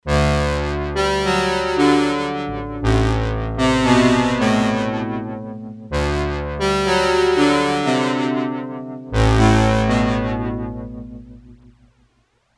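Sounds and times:
Roland JX03 cross-modulated synth: 0.1 - 12.1.

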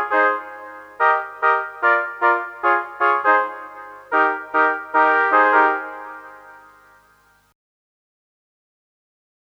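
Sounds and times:
Behringer Solina synthesizer trumpet horn with reverb: 0.0 - 7.2.

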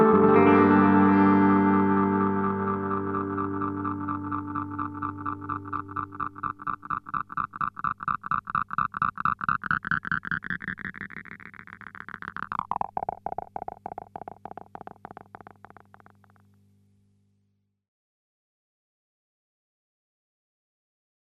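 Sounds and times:
Way Huge Aqua Puss delay effect: 0.0 - 16.4.

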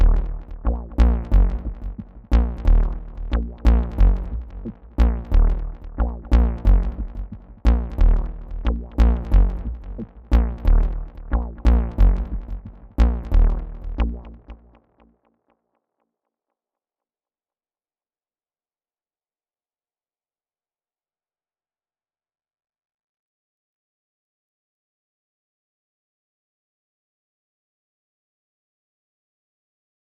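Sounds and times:
night synth arpeggio: 0.0 - 14.7.

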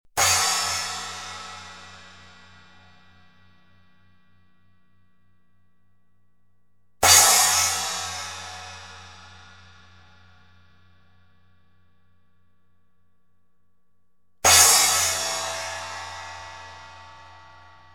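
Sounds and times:
cymbal: 0.2 - 3.6, 7.0 - 10.6, 14.4 - 17.9.

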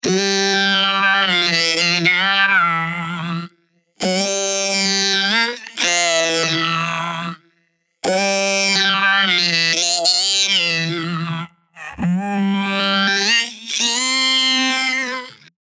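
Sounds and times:
vocoder voice: 0.0 - 15.6.

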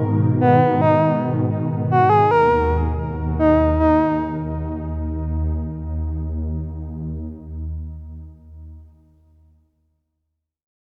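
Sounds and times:
soft Synthex synthesizer: 0.0 - 8.4.

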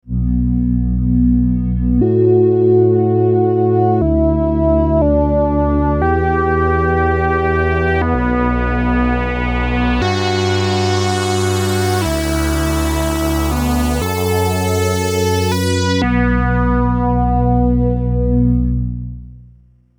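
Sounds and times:
dark energy synth pad: 0.1 - 19.0.

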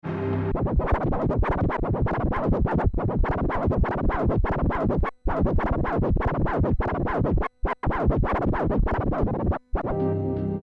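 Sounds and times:
Pioneer DDJ SB3 DJ controller scratching: 0.5 - 10.0.

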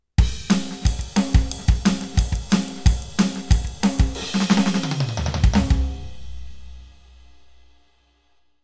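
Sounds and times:
Roland TD07 electronic drums played punky: 0.2 - 6.6.

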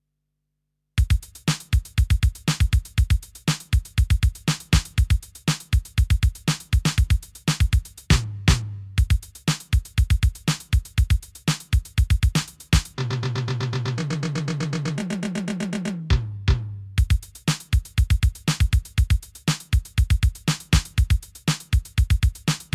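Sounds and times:
cop show beat on TR6S drum machine: 1.0 - 22.7.

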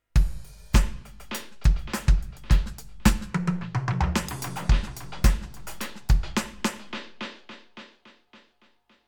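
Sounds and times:
Roland TD07 dub music: 0.7 - 7.4.

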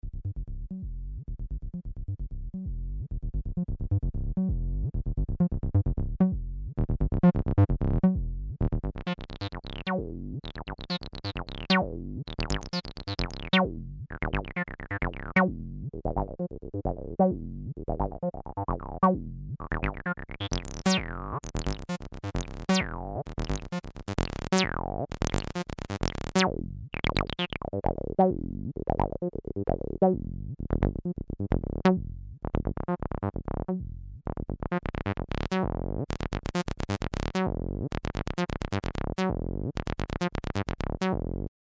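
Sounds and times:
Roland TB-303 bass synthesizer slides: 0.0 - 41.5.

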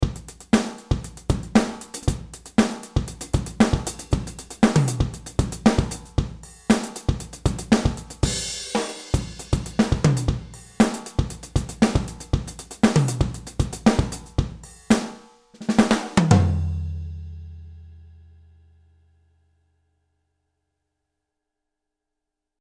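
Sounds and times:
Sonor Designer drum playing funk: 0.0 - 17.4.

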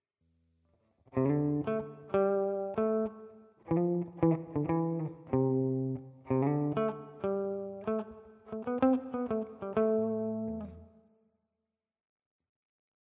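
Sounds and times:
guitar riff on all pickup positions: 1.1 - 10.8.

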